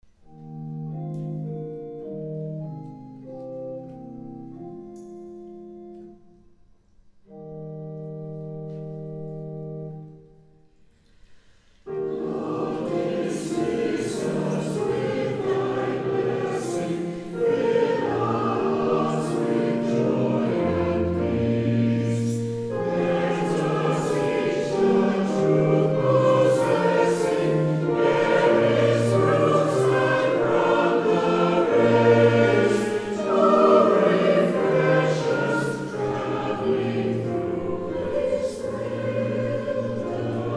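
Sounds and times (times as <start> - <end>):
choir singing a hymn: 11.8 - 40.5.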